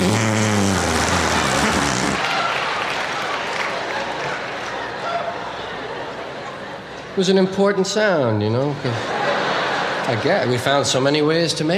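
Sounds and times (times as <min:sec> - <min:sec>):
fake fart made with crook of arm: 0:00.0 - 0:02.3
crowd-like noise: 0:00.0 - 0:11.7
laughter: 0:03.7 - 0:07.2, 0:08.6 - 0:11.0
speech: 0:07.2 - 0:09.1, 0:10.1 - 0:11.7.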